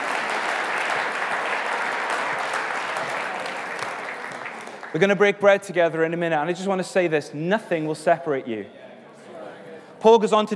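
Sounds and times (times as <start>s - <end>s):
audience applause: 0.0s - 5.4s
speech: 4.9s - 8.8s, 10.0s - 10.5s.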